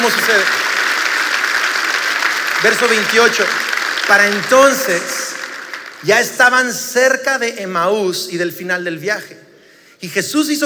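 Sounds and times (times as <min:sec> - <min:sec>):
speech: 0:00.0 - 0:00.6, 0:02.6 - 0:05.1, 0:06.0 - 0:09.4, 0:10.0 - 0:10.6
audience applause: 0:00.0 - 0:06.6.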